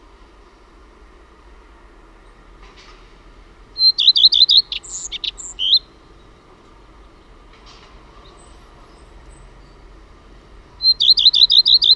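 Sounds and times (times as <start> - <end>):
common redstart whistled calls and chirps: 3.8 - 7.2, 8.1 - 10.0, 10.7 - 11.9.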